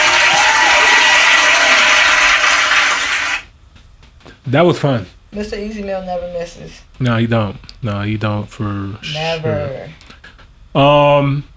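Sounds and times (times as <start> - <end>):
audience applause: 0.0 - 3.5
speech: 4.5 - 10.1, 10.8 - 11.5.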